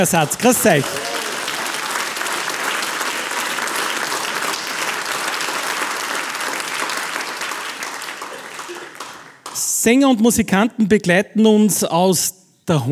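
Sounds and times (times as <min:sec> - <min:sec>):
speech: 0:00.0 - 0:01.2, 0:09.8 - 0:12.9
audience applause: 0:00.0 - 0:09.6.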